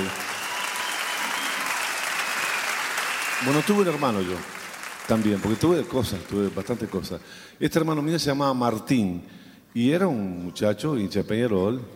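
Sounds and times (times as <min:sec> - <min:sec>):
crowd applauding for the band: 0:00.0 - 0:07.3
speech: 0:03.4 - 0:11.9.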